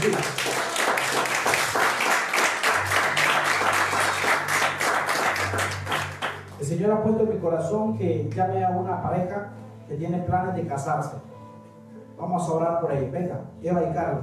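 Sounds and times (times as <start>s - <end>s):
audience clapping: 0.0s - 6.6s
speech: 6.8s - 11.3s, 12.2s - 14.2s.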